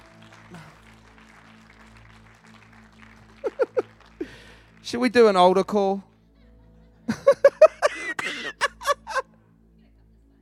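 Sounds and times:
audience clapping: 0.0 - 5.8
laughter: 3.4 - 4.4, 6.3 - 10.4
speech: 4.9 - 6.1.

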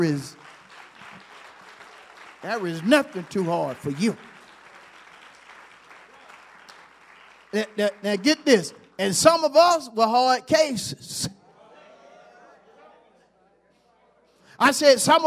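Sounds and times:
speech: 0.0 - 0.4, 2.4 - 4.3, 7.5 - 11.4, 14.6 - 15.2
audience clapping: 0.0 - 9.5.

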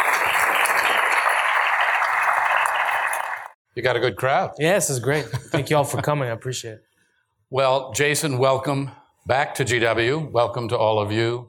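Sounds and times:
audience applause welcoming speakers: 0.0 - 3.6
speech: 3.8 - 6.9, 7.5 - 11.4.

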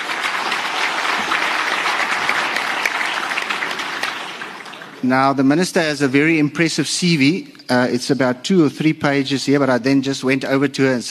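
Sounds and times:
audience applause: 0.0 - 5.1
speech: 5.0 - 11.0.

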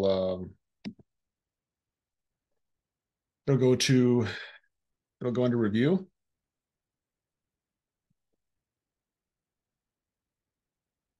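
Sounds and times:
speech: 0.0 - 1.0, 3.5 - 4.5, 5.2 - 6.1
mouse clicks on a publish button: 0.8 - 1.0.

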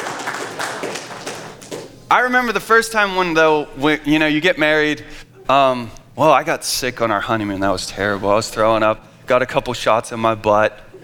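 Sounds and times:
applause: 0.0 - 1.9
speech: 2.1 - 10.8.

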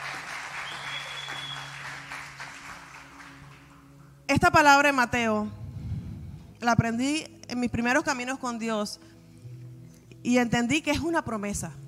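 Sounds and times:
audience applause: 0.0 - 3.8
speech: 4.3 - 5.6, 6.6 - 9.1, 10.2 - 11.8.

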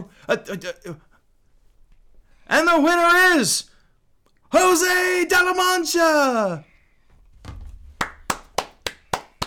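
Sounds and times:
speech: 0.3 - 1.1, 2.5 - 3.7, 4.5 - 6.7
slow hand clapping: 8.0 - 9.4.

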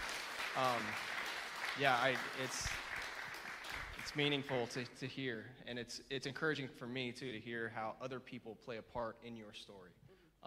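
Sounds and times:
audience applause: 0.0 - 4.9
speech: 0.6 - 1.1, 1.8 - 2.8, 4.0 - 10.4.

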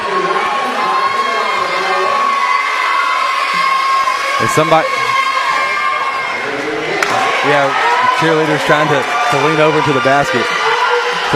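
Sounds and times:
basketball crowd cheering and shouting: 0.0 - 11.3
speech: 4.5 - 5.0, 7.4 - 10.6.

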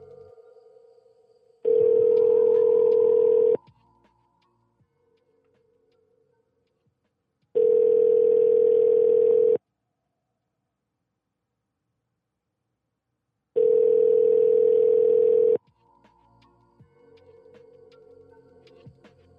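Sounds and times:
telephone ringback tones before being forwarded to voicemail: 1.6 - 3.6, 7.6 - 9.6, 13.6 - 15.6.

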